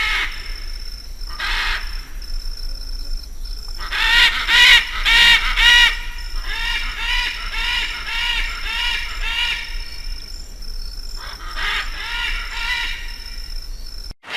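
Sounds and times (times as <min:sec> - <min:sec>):
military macaws squawking and screeching in chorus: 0:03.8 - 0:10.0, 0:11.2 - 0:13.2.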